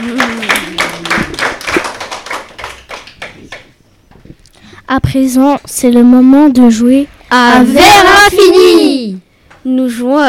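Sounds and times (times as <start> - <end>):
small audience clapping: 0.0 - 3.9
speech: 4.9 - 10.2.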